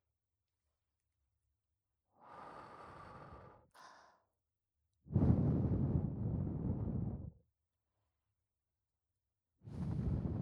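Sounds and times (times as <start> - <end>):
blowing into the right ear: 5.1 - 7.3, 9.7 - 10.3.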